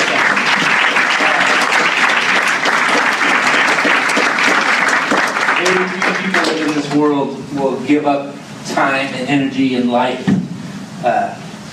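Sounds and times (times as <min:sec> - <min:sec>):
audience applause: 0:00.0 - 0:07.1
speech: 0:07.0 - 0:10.3, 0:11.0 - 0:11.4.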